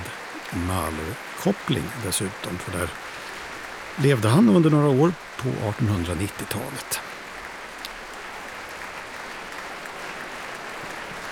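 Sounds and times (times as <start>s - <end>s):
large concert audience applause: 0.0s - 11.3s
speech: 0.5s - 3.3s, 4.0s - 7.1s.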